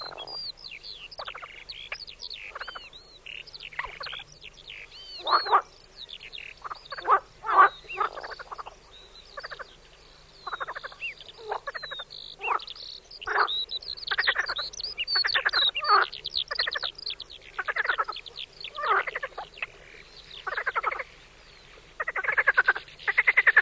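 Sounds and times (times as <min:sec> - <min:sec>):
marsh frog croaking in pulsed rattling bursts: 0:00.0 - 0:00.4, 0:02.4 - 0:05.7, 0:06.4 - 0:08.8, 0:09.4 - 0:09.7, 0:10.4 - 0:14.6, 0:15.2 - 0:16.9, 0:17.5 - 0:19.8, 0:20.4 - 0:21.1, 0:22.0 - 0:23.5.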